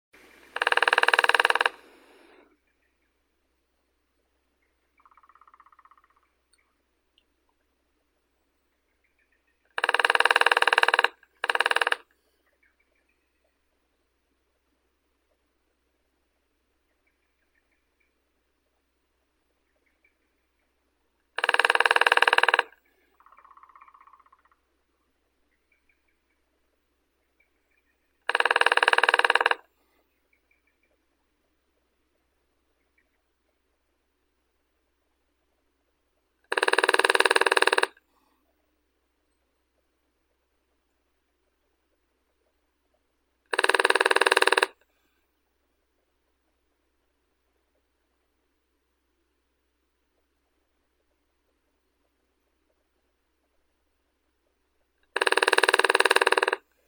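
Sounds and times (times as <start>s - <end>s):
lesser spotted woodpecker Dendrocopos minor: 0.2s - 3.2s, 4.6s - 6.8s, 8.8s - 13.6s, 19.6s - 26.6s, 27.3s - 31.1s, 36.4s - 38.0s, 43.5s - 44.9s, 55.0s - 56.8s.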